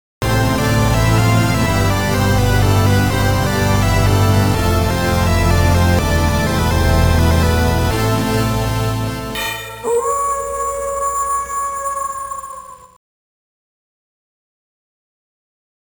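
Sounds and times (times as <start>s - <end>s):
game over jingle: 0.3s - 12.8s.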